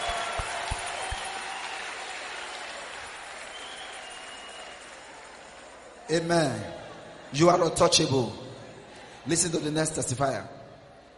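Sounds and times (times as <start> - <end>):
audience clapping hands: 0.0 - 5.9
speech: 6.1 - 8.5, 9.2 - 10.6.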